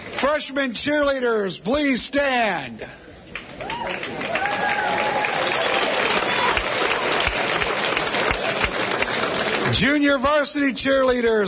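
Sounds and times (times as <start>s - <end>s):
speech: 0.2s - 3.0s, 9.7s - 11.4s
applause for the cheerleaders: 3.3s - 10.0s.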